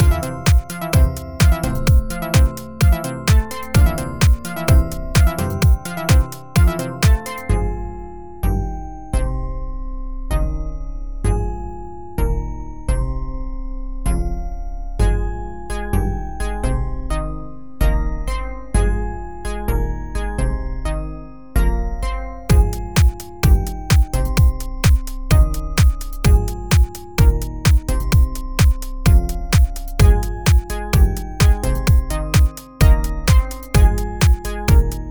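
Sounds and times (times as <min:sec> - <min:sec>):
deep house mix: 0:00.0 - 0:07.5, 0:22.5 - 0:35.0
glockenspiel: 0:00.0 - 0:35.0.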